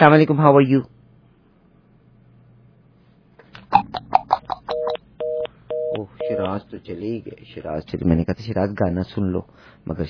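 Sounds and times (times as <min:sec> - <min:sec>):
speech: 0:00.0 - 0:00.9, 0:06.3 - 0:10.0
telephone keypad beeps: 0:04.7 - 0:06.6.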